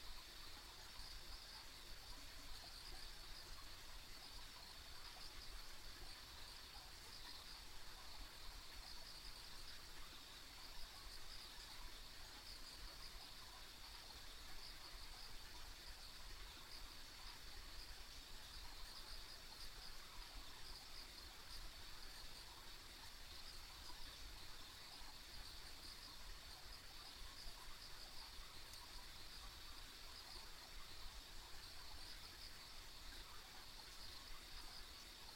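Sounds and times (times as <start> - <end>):
insect chorus trilling: 0.0 - 35.3
low hiss: 0.0 - 35.3.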